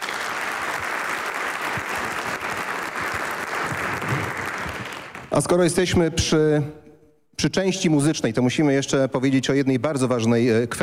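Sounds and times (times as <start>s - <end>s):
audience applause: 0.0s - 5.5s
speech: 5.4s - 6.8s, 7.4s - 10.8s.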